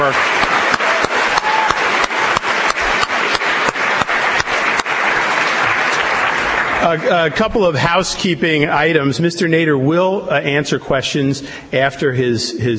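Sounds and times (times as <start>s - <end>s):
audience applause: 0.0s - 8.0s
speech: 6.9s - 12.7s.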